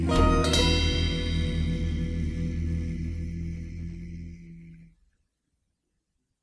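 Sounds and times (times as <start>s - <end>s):
jingle: 0.1s - 3.5s.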